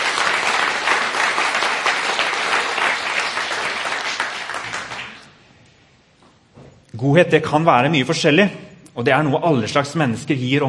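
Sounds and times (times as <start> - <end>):
audience applause: 0.0 - 5.3
speech: 7.0 - 10.6.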